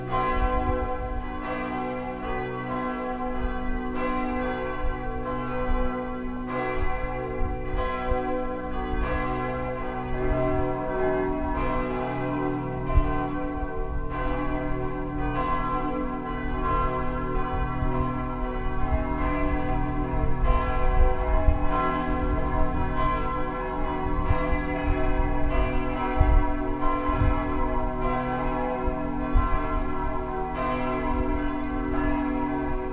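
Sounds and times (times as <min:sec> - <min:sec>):
large bells pealing: 0:00.0 - 0:32.9.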